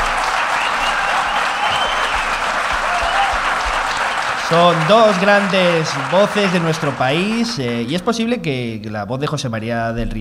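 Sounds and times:
audience applause: 0:00.0 - 0:08.0
speech: 0:04.5 - 0:10.1.

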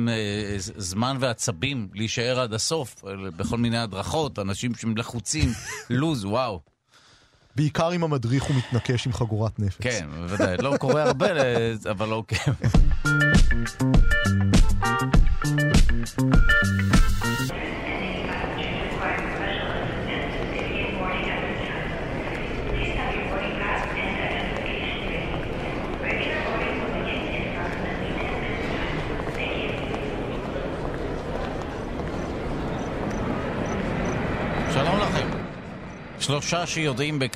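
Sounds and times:
speech: 0:00.0 - 0:06.7, 0:07.6 - 0:17.8, 0:36.3 - 0:37.3
laughter: 0:05.4 - 0:06.0, 0:08.3 - 0:12.9
crowd murmuring in a busy airport: 0:17.5 - 0:35.4.

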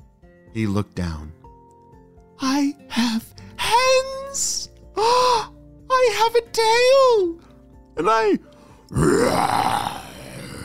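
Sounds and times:
speech: 0:00.5 - 0:01.4, 0:02.4 - 0:03.4, 0:04.4 - 0:05.5, 0:06.3 - 0:07.4, 0:08.0 - 0:10.0
voice imitating a dinosaur roar: 0:08.9 - 0:10.6.

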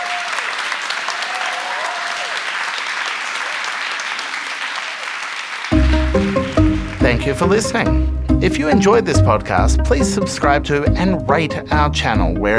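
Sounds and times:
cheers and whistles: 0:00.0 - 0:02.5
audience round of applause: 0:00.0 - 0:07.8
music: 0:05.7 - 0:12.5
speech: 0:07.2 - 0:12.5.

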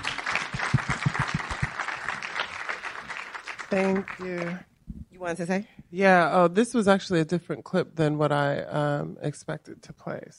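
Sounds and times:
audience applause: 0:00.0 - 0:04.6
speech: 0:03.7 - 0:10.3.

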